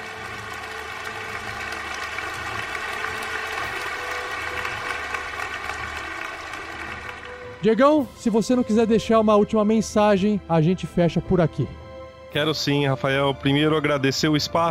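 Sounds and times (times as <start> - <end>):
applause: 0.0 - 7.6
speech: 7.6 - 14.7.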